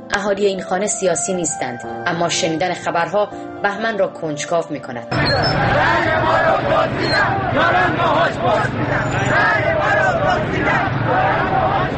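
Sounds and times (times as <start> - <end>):
speech: 0.2 - 11.9
protesters shouting in the street: 5.1 - 11.9.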